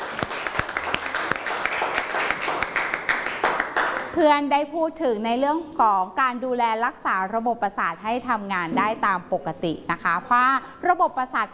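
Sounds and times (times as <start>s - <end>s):
students applauding a representative: 0.0s - 4.2s
speech: 4.2s - 11.5s.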